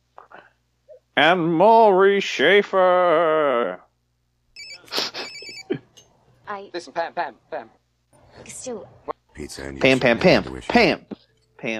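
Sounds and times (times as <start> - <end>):
speech: 1.2 - 3.8, 6.5 - 7.8, 8.4 - 11.7
telephone ringing with a bright trilling electronic tone: 4.6 - 5.7.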